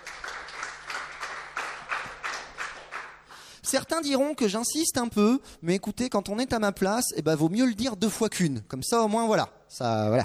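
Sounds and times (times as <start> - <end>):
audience applause: 0.0 - 3.2
speech: 3.7 - 10.2.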